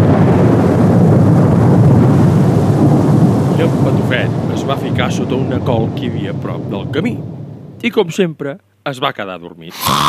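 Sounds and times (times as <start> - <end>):
heavy rain storm: 0.0 - 7.1
speech: 4.6 - 10.0.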